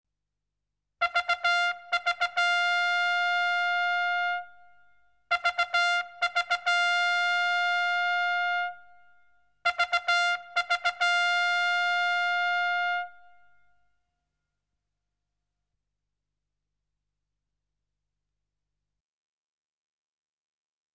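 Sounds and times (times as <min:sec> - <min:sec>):
military trumpet call: 0:01.0 - 0:04.6, 0:05.3 - 0:08.9, 0:09.6 - 0:13.4.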